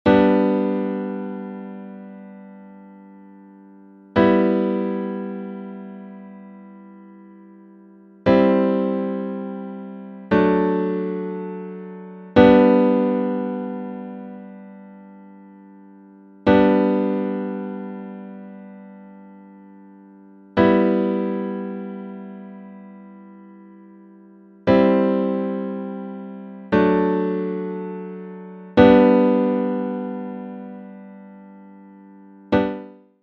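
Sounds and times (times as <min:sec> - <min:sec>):
grand piano: 0:00.0 - 0:33.0.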